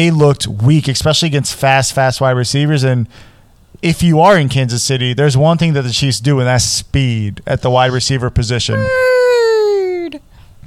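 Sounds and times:
speech: 0.0 - 9.5
person imitating whale calls: 8.7 - 10.2.

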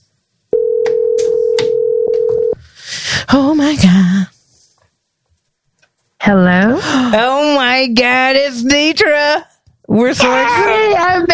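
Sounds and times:
telephone ringback tone of an outgoing call: 0.6 - 2.6
speech: 3.3 - 4.3, 6.3 - 6.5, 7.1 - 11.3.

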